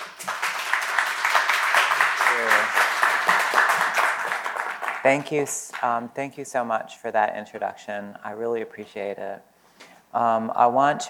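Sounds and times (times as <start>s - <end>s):
audience applause welcoming a poet at a literary reading event: 0.0s - 5.8s
speech: 5.0s - 9.5s, 10.1s - 11.0s.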